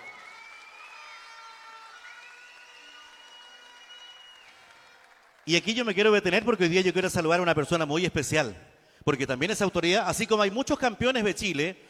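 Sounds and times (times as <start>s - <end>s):
crowd applauding: 0.0s - 7.3s
speech: 5.5s - 11.8s.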